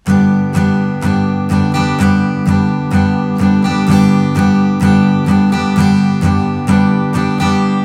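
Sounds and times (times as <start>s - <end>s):
strumming pattern: 0.0s - 7.8s.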